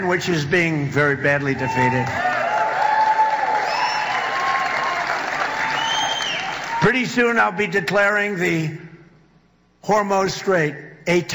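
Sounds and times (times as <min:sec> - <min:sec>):
speech: 0:00.0 - 0:02.3, 0:06.8 - 0:08.9, 0:09.8 - 0:11.3
crowd clapping: 0:01.7 - 0:06.8
faint whistles: 0:05.6 - 0:06.6.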